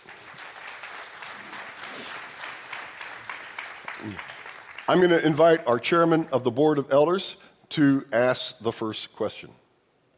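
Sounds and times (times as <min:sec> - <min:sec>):
church congregation applauding at an ordination service: 0:00.0 - 0:06.2
speech: 0:04.0 - 0:09.6.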